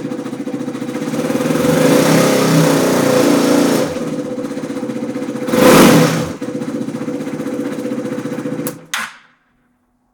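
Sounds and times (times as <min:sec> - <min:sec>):
motorcycle engine: 0:00.0 - 0:09.4.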